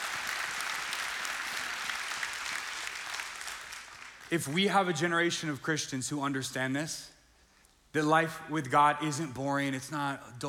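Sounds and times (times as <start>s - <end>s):
crowd applauding: 0.0s - 4.3s
speech: 4.3s - 7.1s, 7.9s - 10.4s.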